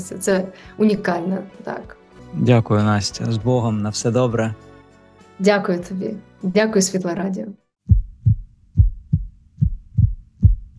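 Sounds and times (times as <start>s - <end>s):
speech: 0.0s - 4.7s, 5.4s - 7.6s
heartbeat: 7.9s - 10.7s.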